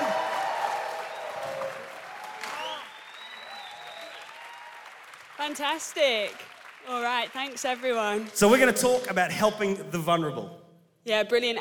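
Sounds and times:
audience applauding at a gathering: 0:00.0 - 0:09.2
speech: 0:05.4 - 0:11.6.

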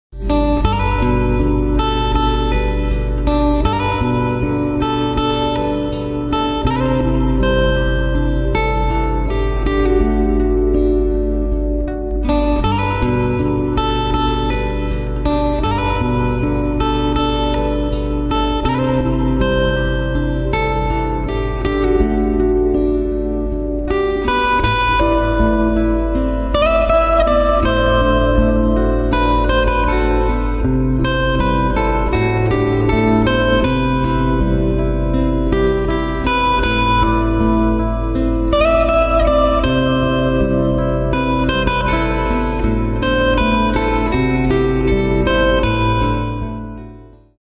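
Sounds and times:
slow guitar: 0:00.1 - 0:47.3.

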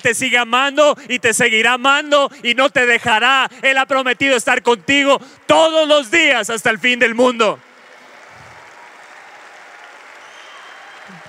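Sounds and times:
speech: 0:00.0 - 0:07.7
audience applause: 0:07.0 - 0:11.2.

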